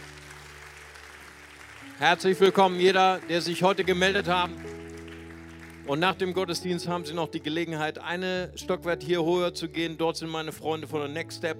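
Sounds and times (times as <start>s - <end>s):
audience applause: 0.0s - 6.4s
speech: 1.9s - 4.8s, 5.9s - 11.5s.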